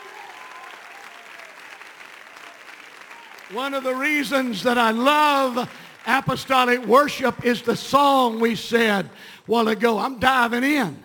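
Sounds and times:
audience clapping: 0:00.0 - 0:07.7
speech: 0:03.5 - 0:11.0.

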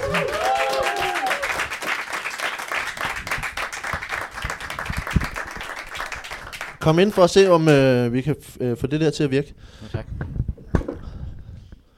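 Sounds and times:
audience applause welcoming two guests onto a show: 0:00.0 - 0:06.8
speech: 0:06.8 - 0:10.1.

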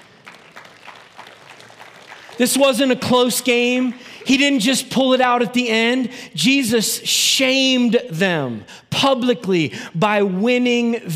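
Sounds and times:
audience applause: 0:00.0 - 0:04.7
speech: 0:02.4 - 0:11.1.

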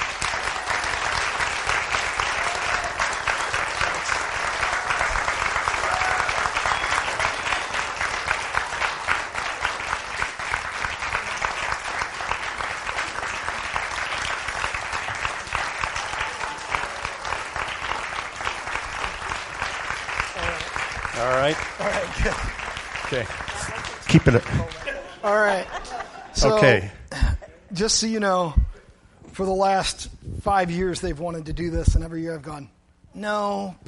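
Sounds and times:
large audience applause: 0:00.0 - 0:25.1
speech: 0:24.1 - 0:25.7, 0:26.4 - 0:27.0, 0:27.8 - 0:28.6, 0:29.4 - 0:33.8
laughter: 0:24.1 - 0:27.7.

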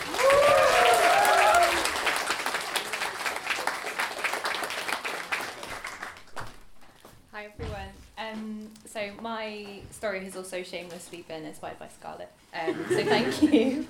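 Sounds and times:
round of applause: 0:00.0 - 0:06.6
speech: 0:09.9 - 0:13.8
laughter: 0:12.6 - 0:13.8.

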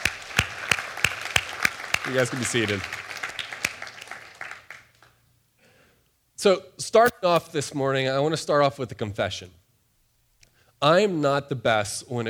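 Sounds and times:
audience applause: 0:00.0 - 0:04.8
speech: 0:02.0 - 0:03.0, 0:06.4 - 0:09.6, 0:10.8 - 0:12.2.

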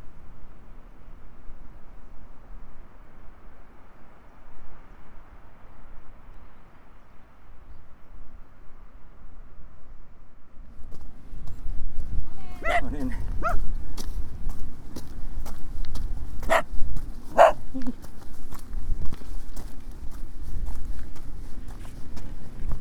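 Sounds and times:
low rumble of wind on the South West Coast Path: 0:10.6 - 0:22.7
footsteps on stone along the South West Coast Path: 0:12.6 - 0:22.7.

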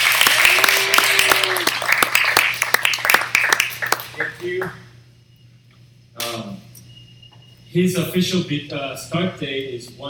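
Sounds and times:
audience applause: 0:00.0 - 0:04.4
speech: 0:07.8 - 0:10.0.

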